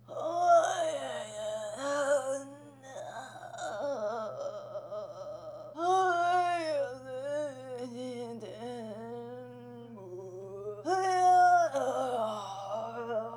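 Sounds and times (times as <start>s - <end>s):
farmer singing: 0.0s - 13.3s.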